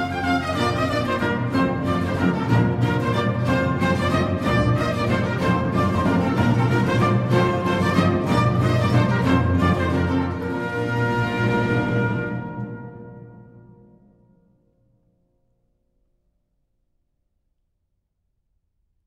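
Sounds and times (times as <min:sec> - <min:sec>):
minuet: 0:00.0 - 0:13.7.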